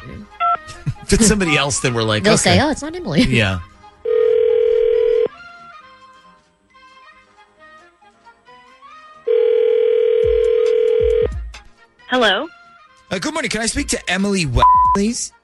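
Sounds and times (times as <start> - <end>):
speech: 1.1 - 3.7, 12.1 - 12.5, 13.1 - 15.4
telephone dial tone: 4.1 - 5.3, 9.3 - 11.3.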